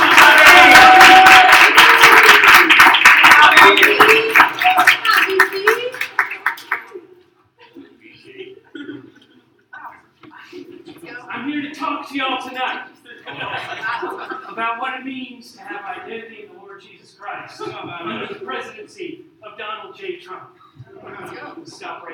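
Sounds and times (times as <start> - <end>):
audience applause: 0.0 - 6.9
laughter: 13.1 - 14.8
speech: 20.0 - 22.1.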